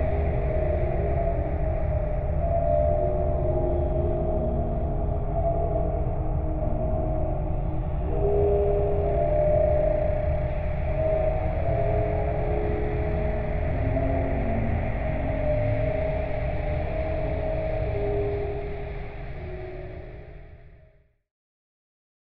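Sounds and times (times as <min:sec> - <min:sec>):
dark musical warble drone: 0:00.0 - 0:20.9.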